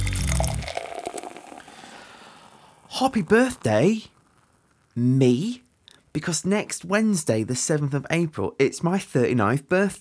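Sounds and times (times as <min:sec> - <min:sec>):
beer being poured into a glass: 0:00.0 - 0:05.0
speech: 0:03.0 - 0:04.1, 0:05.0 - 0:09.9.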